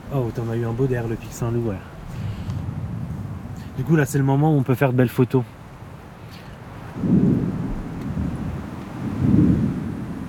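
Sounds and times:
speech: 0:00.1 - 0:01.9, 0:03.8 - 0:05.6, 0:07.0 - 0:07.2
thunder from lightning strikes: 0:02.0 - 0:04.2, 0:06.9 - 0:10.2.

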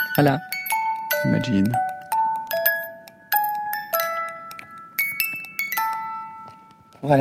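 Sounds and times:
tiny music box playing a slow tinkling melody: 0:00.0 - 0:07.2
speech: 0:00.2 - 0:00.6, 0:01.2 - 0:01.9, 0:07.0 - 0:07.2.

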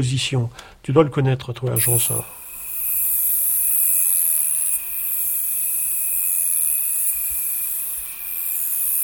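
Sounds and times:
speech: 0:00.0 - 0:02.4
thin steady whine: 0:01.8 - 0:09.0
saddle-backed bush-cricket singing in waves: 0:02.0 - 0:09.0.

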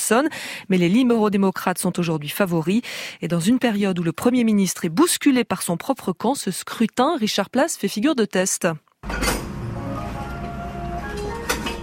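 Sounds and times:
speech: 0:00.1 - 0:09.3
crockery clinking as vendor packs dishes: 0:09.0 - 0:09.5, 0:11.4 - 0:11.8.

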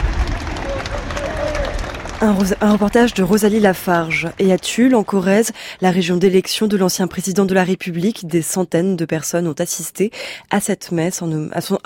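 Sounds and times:
crowd applauding on the forecourt of Saint-Sulpice church at Jacques Chirac's funeral: 0:00.0 - 0:07.4
speech: 0:02.2 - 0:11.8.

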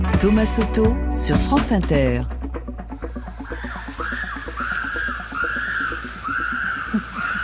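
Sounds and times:
speech: 0:00.2 - 0:02.3
chimpanzees screaming: 0:03.4 - 0:07.4.

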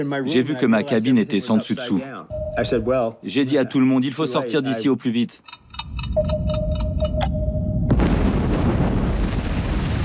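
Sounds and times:
speech: 0:00.0 - 0:06.4
bomb explosion: 0:07.7 - 0:10.0.

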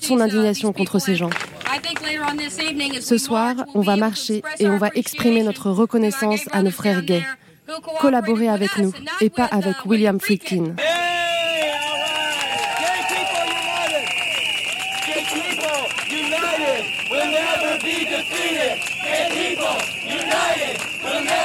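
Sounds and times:
speech: 0:00.1 - 0:10.9
crowd of protesters shouting: 0:10.8 - 0:21.4.

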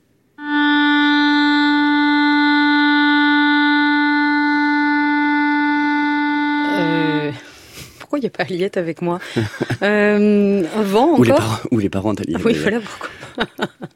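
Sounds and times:
clarinet playing long steady notes: 0:00.4 - 0:07.8
speech: 0:08.2 - 0:13.9
laughter: 0:09.2 - 0:10.1, 0:12.4 - 0:13.9.

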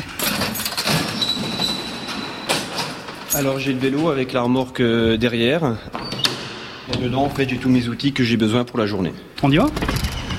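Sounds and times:
squeaking door opening: 0:00.0 - 0:04.0, 0:05.9 - 0:07.9, 0:09.5 - 0:10.3
speech: 0:03.4 - 0:06.1, 0:07.0 - 0:10.0.

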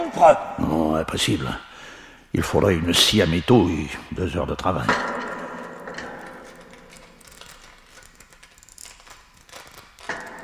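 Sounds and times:
speech: 0:00.1 - 0:01.7, 0:02.3 - 0:05.1
creaking: 0:04.1 - 0:10.4.

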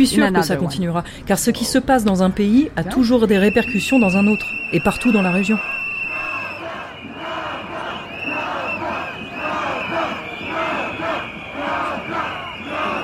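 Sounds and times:
speech: 0:00.0 - 0:05.8
street demonstration crowd chanting in Sarajevo's old town: 0:05.1 - 0:13.0.

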